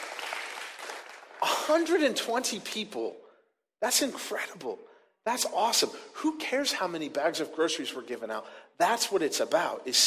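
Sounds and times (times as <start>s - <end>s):
audience cheering and applauding: 0.0s - 1.6s
speech: 1.7s - 3.2s, 3.8s - 10.0s.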